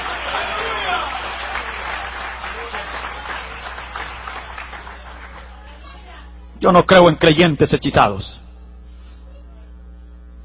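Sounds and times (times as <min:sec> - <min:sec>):
church congregation clapping: 0:00.0 - 0:06.0
speech: 0:06.6 - 0:08.4.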